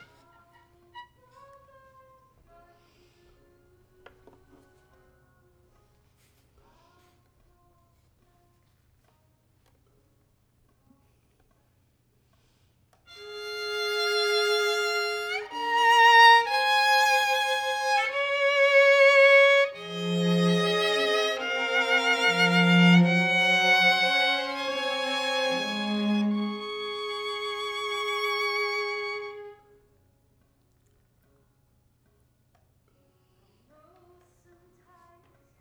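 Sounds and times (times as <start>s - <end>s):
violin: 13.1s - 29.9s.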